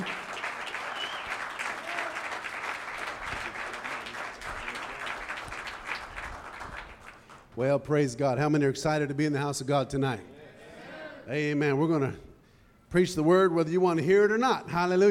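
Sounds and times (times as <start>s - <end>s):
audience applauding: 0.0s - 7.6s
speech: 7.6s - 10.3s, 11.3s - 12.3s, 12.9s - 15.0s.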